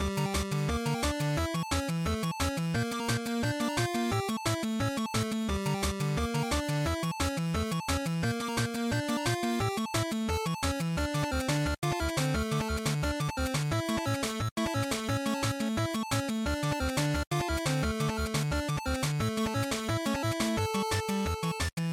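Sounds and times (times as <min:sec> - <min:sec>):
Game Boy action boss chiptune game music: 0:00.0 - 0:21.9.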